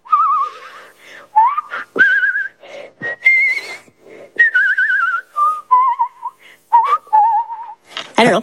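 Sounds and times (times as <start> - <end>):
person whistling a lively melody with vibrato: 0.0 - 7.8.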